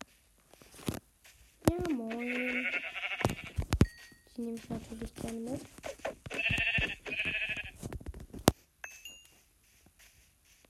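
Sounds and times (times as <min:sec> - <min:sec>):
sheep bleating: 0:02.1 - 0:03.6, 0:06.3 - 0:07.8
speech: 0:04.4 - 0:05.8.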